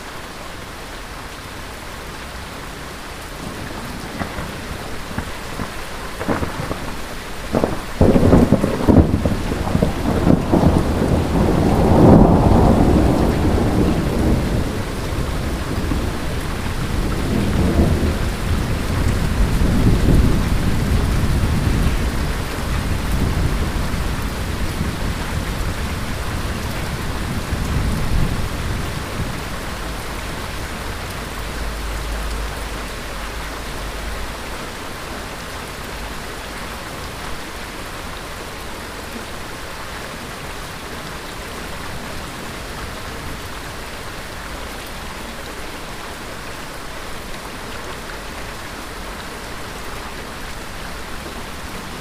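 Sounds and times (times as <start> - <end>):
heavy rain: 0.0 - 51.9
thunder: 3.4 - 30.0.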